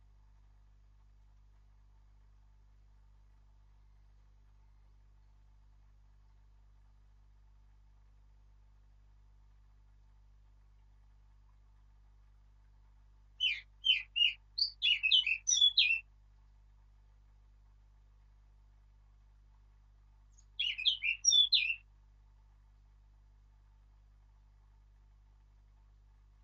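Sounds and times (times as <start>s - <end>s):
Sylvia atricapilla singing: 13.4s - 16.0s, 20.4s - 21.8s.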